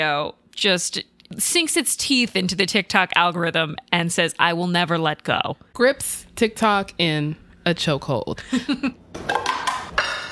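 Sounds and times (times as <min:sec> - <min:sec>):
speech: 0:00.0 - 0:09.4
utensils clinking against a bowl making a salmon rice bowl: 0:09.4 - 0:10.3.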